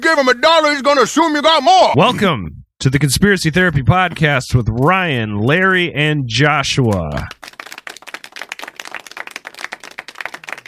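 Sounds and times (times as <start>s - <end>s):
speech: 0.0s - 7.6s
clapping: 6.7s - 10.6s.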